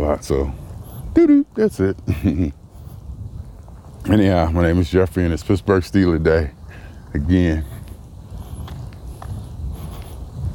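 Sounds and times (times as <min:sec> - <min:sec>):
speech: 0:00.0 - 0:00.6, 0:01.2 - 0:02.6, 0:04.0 - 0:07.8
footsteps of a man walking outdoors: 0:02.7 - 0:05.6, 0:07.0 - 0:10.5.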